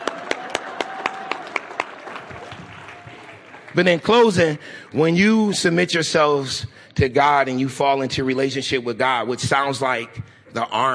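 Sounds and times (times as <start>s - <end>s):
single person clapping: 0.0s - 3.8s
applause: 0.0s - 5.8s
speech: 3.7s - 10.9s.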